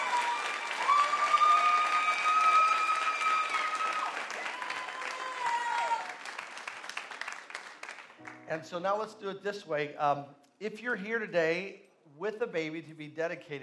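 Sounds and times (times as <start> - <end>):
audience hand clapping: 0.0 - 8.6
speech: 8.5 - 13.6.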